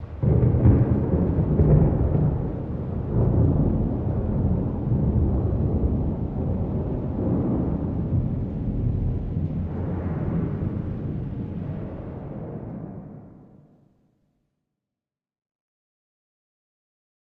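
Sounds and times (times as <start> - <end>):
lightning: 0.0 - 13.6.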